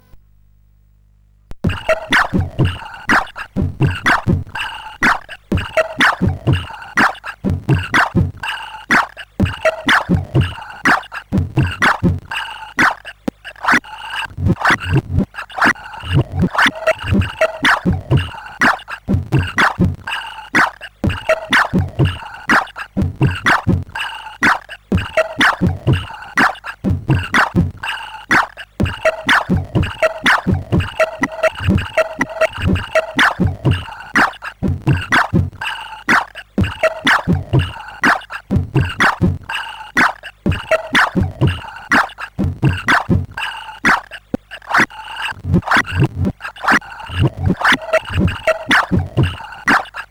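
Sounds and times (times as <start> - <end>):
CSG8580R5 sound chip samples: 1.6 - 50.0.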